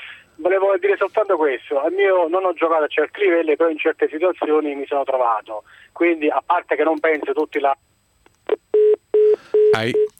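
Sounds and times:
speech: 0.4s - 7.9s, 9.8s - 10.1s
telephone tone after a dropped call: 8.8s - 10.1s.

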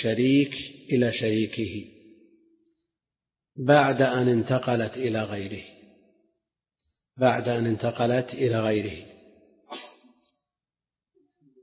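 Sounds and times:
speech: 0.0s - 2.0s, 3.6s - 5.8s, 7.2s - 9.1s
person sneezing during a lecture on Islamic jurisprudence: 9.7s - 10.2s.

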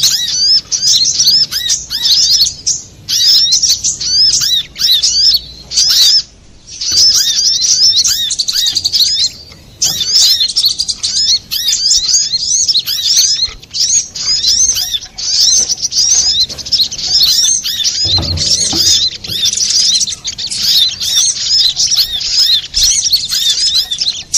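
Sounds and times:
little spiderhunter singing: 0.0s - 24.3s
low bump: 18.0s - 19.6s.

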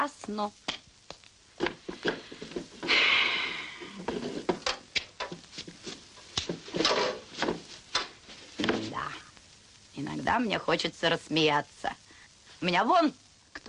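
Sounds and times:
speech: 0.0s - 0.7s, 10.3s - 12.0s, 12.6s - 13.6s
wooden chair scraping and knocking as it is dragged: 1.6s - 3.0s, 4.0s - 9.0s.

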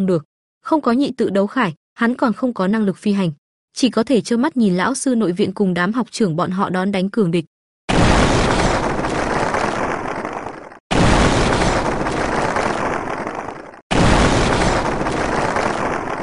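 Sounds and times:
speech: 0.0s - 8.3s
artillery shell explosions: 7.9s - 16.2s.

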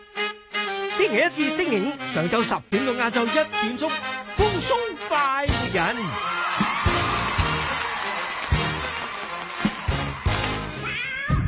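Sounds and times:
bouncy rhythmic music with a steady thumping beat: 0.0s - 11.0s
speech: 1.0s - 6.4s
cat meowing: 10.8s - 11.4s.

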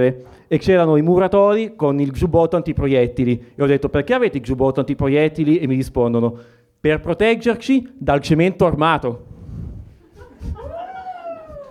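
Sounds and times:
speech: 0.0s - 9.4s
comedy show audience member howling: 10.6s - 11.6s.

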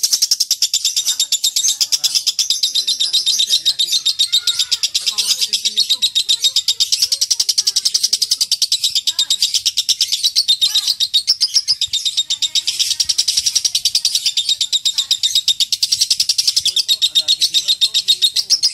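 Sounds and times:
lovebird chatter: 0.0s - 18.7s.

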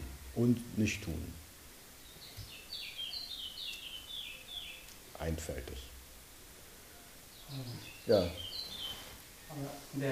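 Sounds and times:
steady hiss: 0.0s - 10.1s
speech: 0.4s - 1.4s, 5.2s - 5.9s, 7.5s - 8.5s, 9.5s - 10.1s
birds chirping and singing: 2.0s - 5.0s, 7.1s - 9.2s.

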